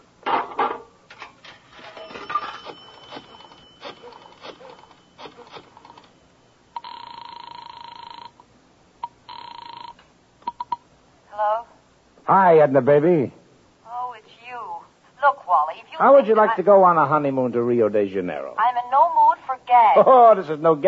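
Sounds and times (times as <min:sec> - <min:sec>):
scattered knocks, shuffles and clatter: 0:00.2 - 0:06.2
telephone ringing in a phone booth in a drugstore: 0:01.6 - 0:08.4, 0:09.0 - 0:10.8
speech: 0:12.3 - 0:13.4, 0:16.0 - 0:19.0, 0:19.7 - 0:20.8.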